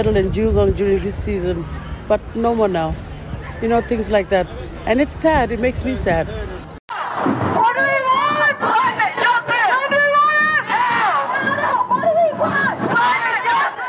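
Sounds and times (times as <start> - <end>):
speech: 0.0 - 6.5
climate protest rally crowd: 1.6 - 13.8.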